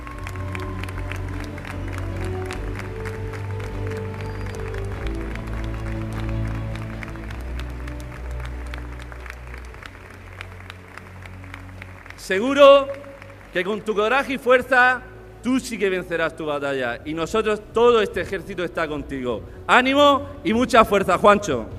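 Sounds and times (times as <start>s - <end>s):
audience applause: 0.0s - 14.6s
speech: 12.3s - 21.7s.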